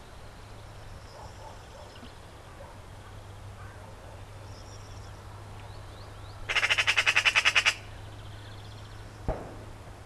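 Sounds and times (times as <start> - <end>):
Eurasian Magpie chattering: 6.5 - 7.9.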